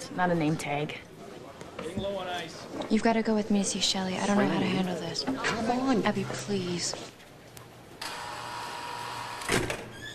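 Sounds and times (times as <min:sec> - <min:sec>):
speech: 0:00.1 - 0:01.1, 0:01.8 - 0:07.2
secure door electric whirr: 0:08.0 - 0:10.1.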